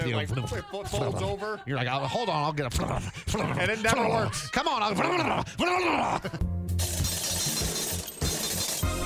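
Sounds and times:
speech: 0.0 - 6.9
laundromat metallic rattling and clanking: 6.8 - 8.9.

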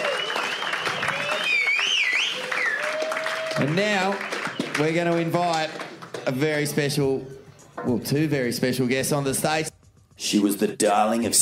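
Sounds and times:
shrill whistles: 0.0 - 3.6, 4.2 - 4.9
audience applause: 0.0 - 6.4
crowd cheering: 0.0 - 6.5
speech: 3.6 - 11.4.

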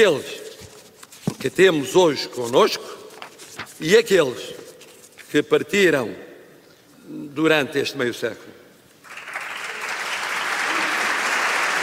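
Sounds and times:
speech: 0.0 - 0.4, 1.4 - 3.0, 3.6 - 4.6, 5.3 - 6.3, 7.1 - 8.6
audience applause: 9.0 - 11.8.

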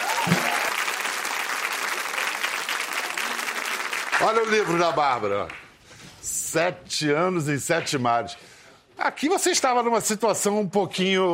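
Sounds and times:
audience applause: 0.0 - 5.7
speech: 4.2 - 5.6, 6.5 - 11.3.

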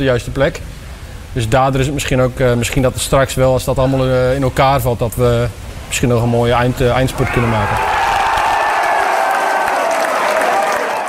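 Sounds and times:
speech: 0.0 - 8.1
large crowd cheering and applauding a football goal: 6.6 - 11.0.

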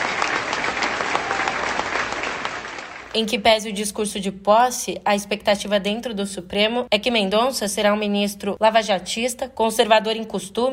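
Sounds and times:
audience applause: 0.0 - 3.1
speech: 3.1 - 10.7.

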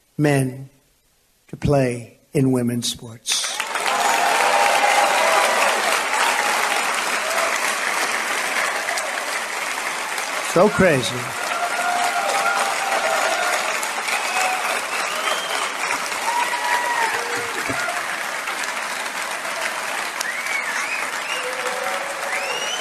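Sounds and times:
speech: 0.2 - 0.8, 1.5 - 3.5, 10.6 - 11.5
faint whoops and cheers: 3.6 - 18.2, 19.3 - 22.8
large crowd clapping: 3.6 - 22.8.

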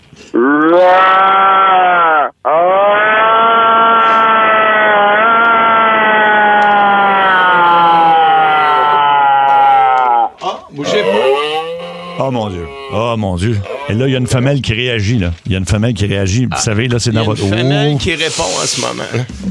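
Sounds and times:
speech: 0.2 - 1.7, 12.3 - 19.5
person imitating a moose mating call over telephone: 0.2 - 14.1.

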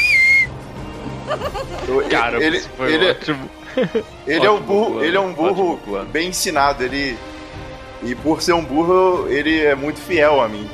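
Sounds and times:
loud human whistle: 0.0 - 0.5
laughter: 1.0 - 4.6
speech: 1.3 - 7.3, 8.0 - 10.7.

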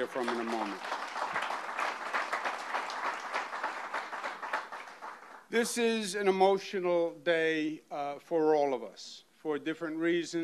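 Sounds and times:
speech: 0.0 - 1.0, 5.5 - 10.4
crowd applause: 0.0 - 5.4.

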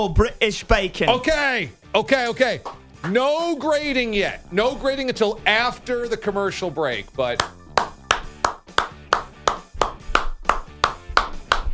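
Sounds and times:
speech: 0.0 - 7.6
polite tennis-style clapping: 2.3 - 3.3, 7.2 - 11.7.

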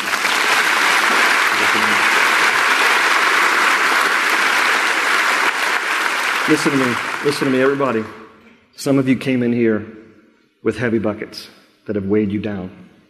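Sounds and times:
large audience applause: 0.0 - 8.3
speech: 6.5 - 8.2, 8.8 - 10.0, 10.6 - 12.9.

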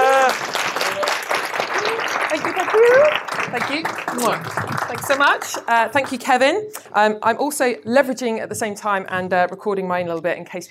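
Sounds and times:
cheer: 0.0 - 3.2
audience applause: 0.0 - 6.2
speech: 3.7 - 10.6.

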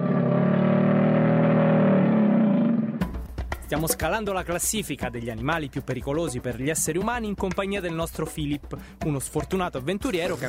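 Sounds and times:
crocodile roar: 0.0 - 3.1
speech: 3.7 - 10.4.

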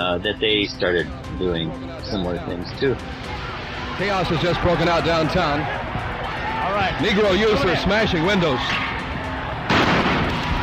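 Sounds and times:
speech: 0.1 - 5.8, 6.7 - 8.9
tear gas canister fired by police: 9.7 - 10.5.

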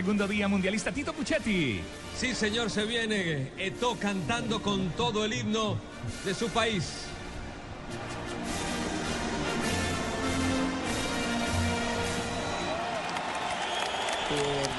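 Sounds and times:
speech: 0.0 - 7.1, 14.3 - 14.7
stadium crowd applauding: 7.9 - 14.7.

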